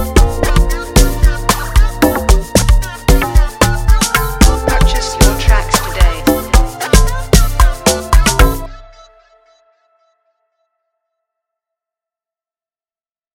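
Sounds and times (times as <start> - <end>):
beat: 0.0 - 8.7.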